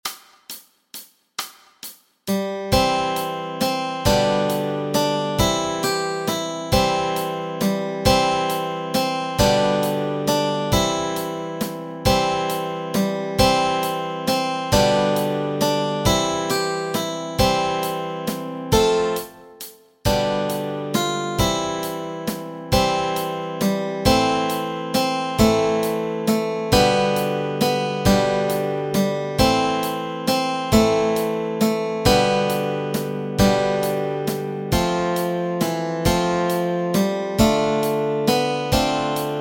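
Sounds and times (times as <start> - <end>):
melody and chords: 2.3 - 39.3.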